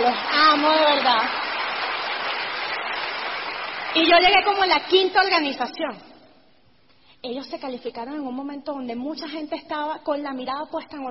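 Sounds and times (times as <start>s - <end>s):
audience applause: 0.0s - 4.2s
speech: 0.2s - 1.4s, 3.9s - 6.1s, 7.2s - 11.0s.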